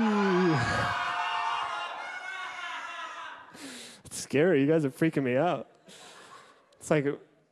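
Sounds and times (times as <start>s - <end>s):
large crowd shouting boo: 0.0s - 3.5s
speech: 4.3s - 5.8s, 6.9s - 7.3s.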